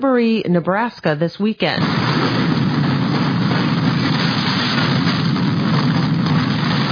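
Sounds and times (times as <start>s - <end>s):
speech: 0.1s - 2.5s
funnel cloud roaring through a field in St. Liberty, Nebraska: 1.8s - 6.9s.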